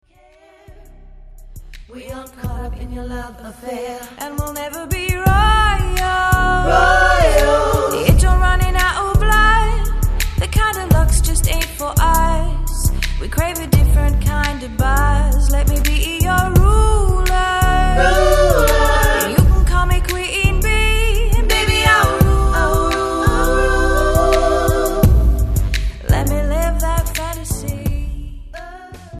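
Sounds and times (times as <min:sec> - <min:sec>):
bassline: 0:00.7 - 0:03.4, 0:04.4 - 0:29.1.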